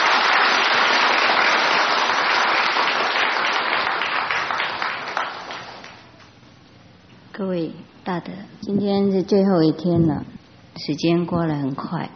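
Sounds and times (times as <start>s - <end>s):
audience applause: 0.0s - 6.0s
speech: 7.4s - 12.1s.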